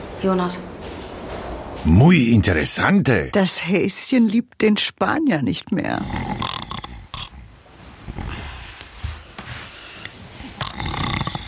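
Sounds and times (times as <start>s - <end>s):
speech: 0.2s - 0.8s, 1.8s - 6.5s
loud snoring: 6.0s - 8.6s, 10.4s - 11.4s.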